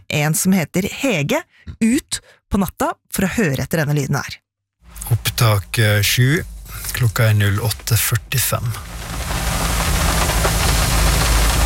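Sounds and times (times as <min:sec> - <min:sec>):
speech: 0:00.1 - 0:04.4, 0:05.0 - 0:09.3
low hum: 0:04.9 - 0:11.6
rain against a car window: 0:05.0 - 0:11.6.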